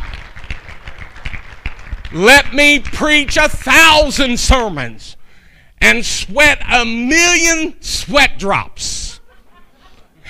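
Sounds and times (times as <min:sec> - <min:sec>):
audience clapping: 0:00.0 - 0:03.6
speech: 0:02.1 - 0:05.2, 0:05.8 - 0:09.2
laughter: 0:09.1 - 0:10.2.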